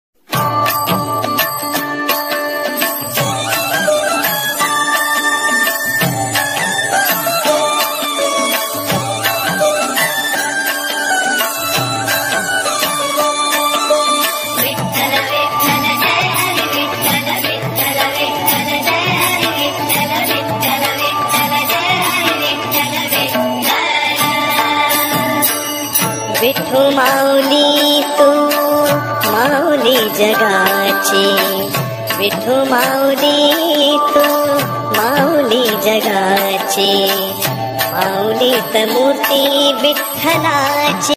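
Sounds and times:
Marathi devotional bhajan song ringtone: 0.2 - 41.1.

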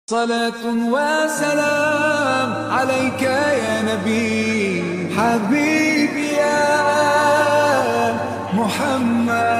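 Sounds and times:
Arabic Islamic ringtone: 0.4 - 9.5.

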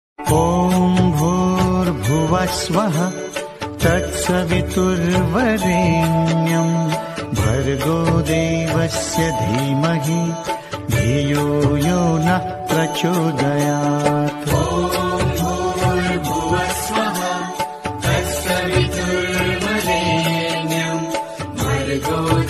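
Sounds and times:
devotional mantra ringtone: 0.2 - 22.4.

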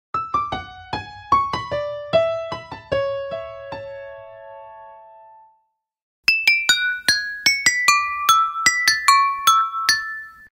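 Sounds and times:
ringtone melody on piano: 0.2 - 5.6, 6.3 - 10.5
ringtone melody on glass: 6.3 - 10.5.

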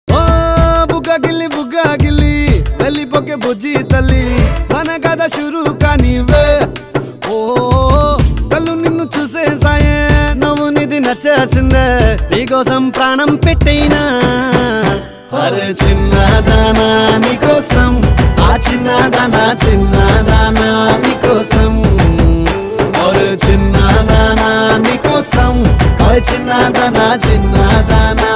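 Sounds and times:
Telugu love song: 0.1 - 28.3.

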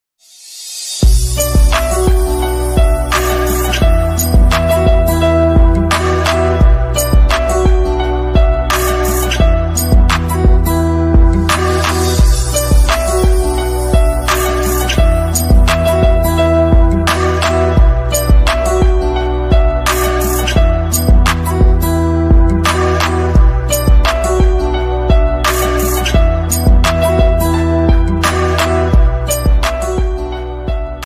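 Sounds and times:
instrumental Punjabi ringtone background music: 1.0 - 30.3.

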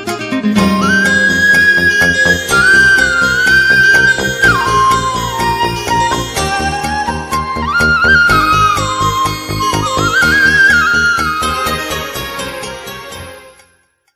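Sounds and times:
Kannada ringtone background music: 0.1 - 13.9.

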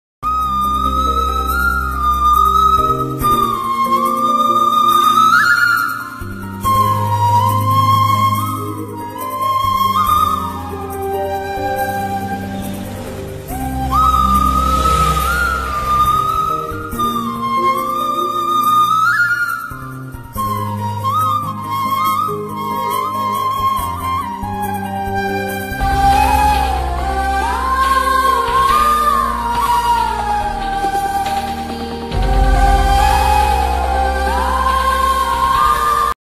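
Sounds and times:
Tamil romantic background music: 0.2 - 36.2.

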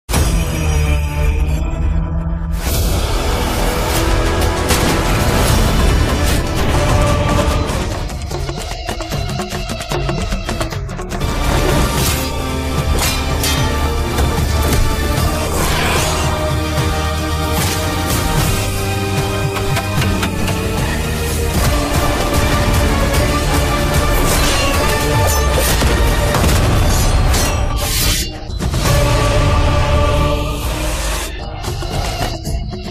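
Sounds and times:
trailer background music: 0.1 - 32.9.

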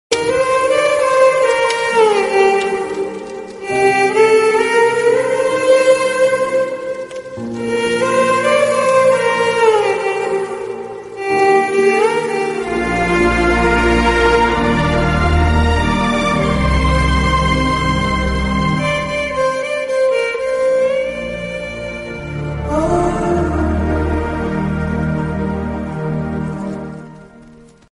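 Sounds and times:
emotional Telugu background music: 0.1 - 27.9.

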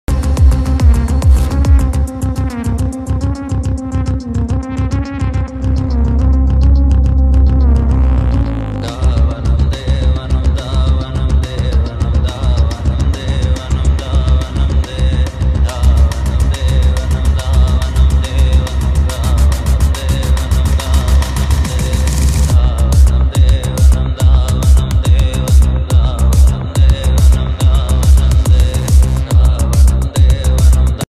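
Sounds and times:
bass boosted teaser background music ringtone: 0.1 - 31.0.

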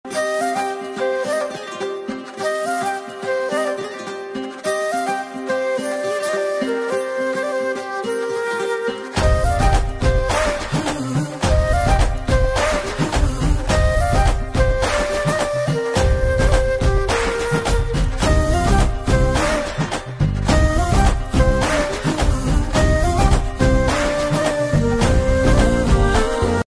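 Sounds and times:
love background music ringtone: 0.1 - 26.6.

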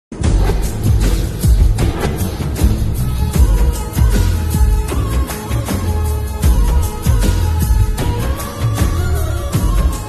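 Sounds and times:
instrumental music: 0.2 - 10.0.

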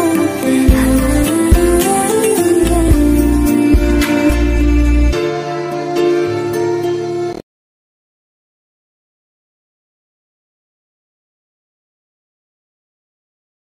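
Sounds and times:
instrumental background music ringtone: 0.0 - 7.4.

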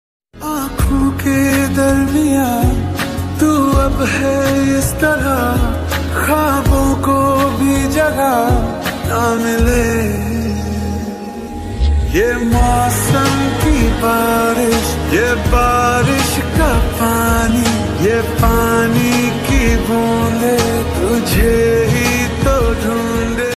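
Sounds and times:
slow reverb song: 0.4 - 23.5.

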